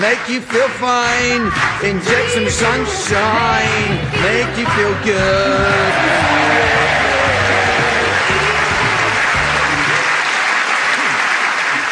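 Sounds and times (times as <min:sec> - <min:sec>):
speech: 0:00.0 - 0:07.0
crowd applause: 0:00.0 - 0:11.9
low voices: 0:01.2 - 0:10.2.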